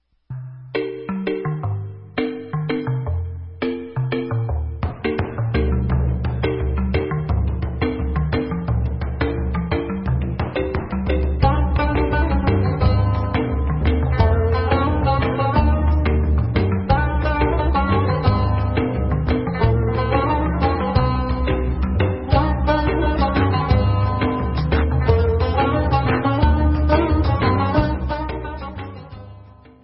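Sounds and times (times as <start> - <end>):
debka instrumental music: 0.3 - 29.8.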